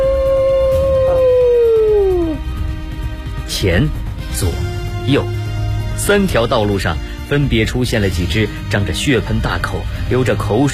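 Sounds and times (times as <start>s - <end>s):
wolf of a pack howling: 0.0s - 2.5s
low rumbling background: 0.0s - 10.6s
speech: 3.6s - 5.4s, 6.0s - 10.7s.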